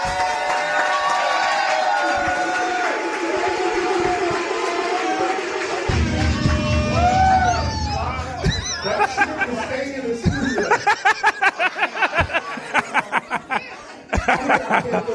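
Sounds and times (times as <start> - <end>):
crowd clapping and cheering: 0.0 - 9.6
laughter: 8.4 - 15.1.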